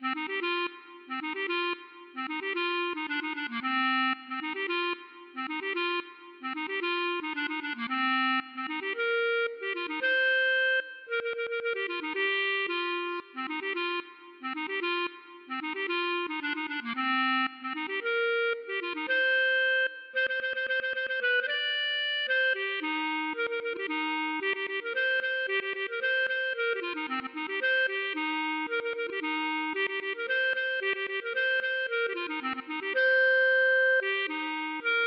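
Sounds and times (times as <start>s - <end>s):
klezmer music: 0.0s - 35.0s.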